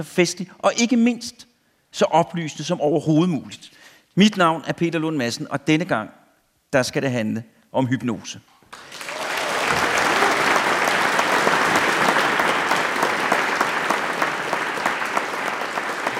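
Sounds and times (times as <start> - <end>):
speech: 0.0 - 8.8
audience applause: 8.7 - 16.1.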